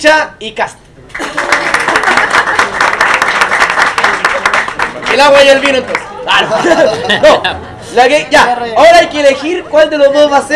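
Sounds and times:
speech: 0.0 - 2.5, 5.1 - 10.5
crowd applauding to vote for a discussion topic: 1.1 - 6.8
laughter: 1.1 - 8.5.

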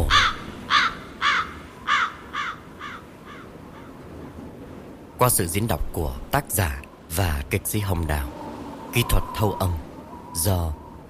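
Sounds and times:
crows cawing: 0.0 - 4.2
speech: 5.2 - 9.8, 10.4 - 11.0.

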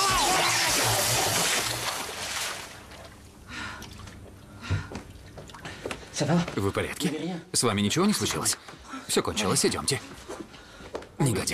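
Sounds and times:
man crashing into a water-filled bathtub: 0.0 - 3.1
water sloshing and dripping in a bathtub: 0.0 - 6.2
speech: 6.2 - 10.2, 11.2 - 11.5.

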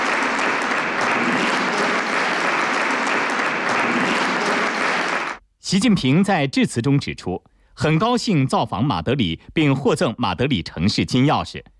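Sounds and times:
audience applauding warmly: 0.0 - 5.4
speech: 5.7 - 11.7.

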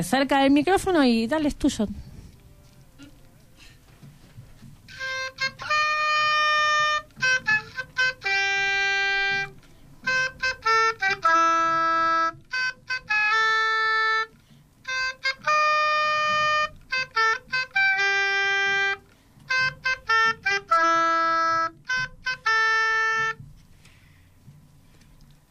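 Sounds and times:
speech: 0.0 - 2.1
solo oboe playing a lively melody: 4.8 - 24.4.

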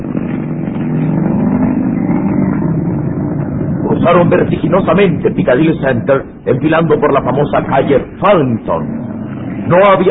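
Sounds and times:
modern Rolls Royce sports car engine accelerating: 0.0 - 5.3, 8.6 - 10.0
speech: 4.0 - 10.0.

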